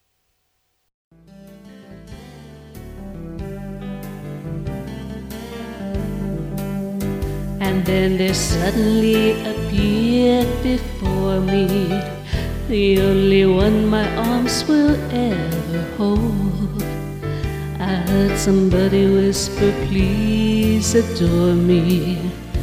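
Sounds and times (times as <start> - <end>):
jazz music: 1.5 - 22.6.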